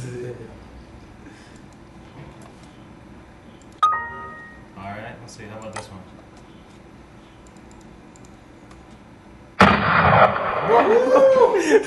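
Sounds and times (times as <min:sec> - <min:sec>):
.44 Magnum gunshot: 0:09.6 - 0:10.8
laughter: 0:10.6 - 0:11.8
speech: 0:10.7 - 0:11.8.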